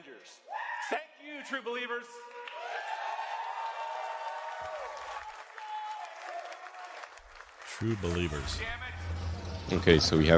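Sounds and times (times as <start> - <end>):
speech: 0.2 - 2.4, 7.8 - 9.0, 9.7 - 10.3
crowd applauding and cheering: 2.2 - 10.3.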